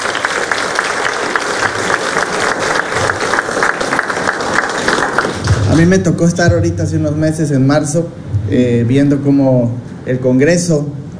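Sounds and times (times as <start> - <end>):
crowd applause: 0.0 - 6.1
speech: 5.8 - 11.0.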